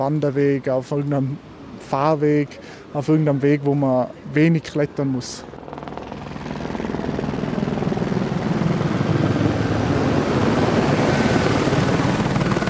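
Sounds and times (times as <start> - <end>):
speech: 0.0 - 5.5
police helicopter flying over a mountain training centre: 4.6 - 12.6.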